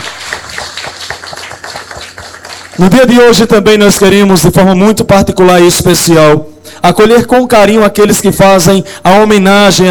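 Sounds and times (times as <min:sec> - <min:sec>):
applause at a Santa Teresinha celebration: 0:00.0 - 0:03.0
speech: 0:02.8 - 0:09.8.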